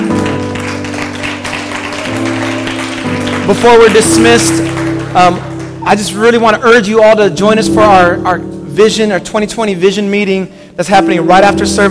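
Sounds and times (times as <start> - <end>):
audience hand clap applause: 0.0 - 6.7
sustained low keyboard chord: 0.0 - 10.2, 11.0 - 11.8
speech: 3.5 - 11.8.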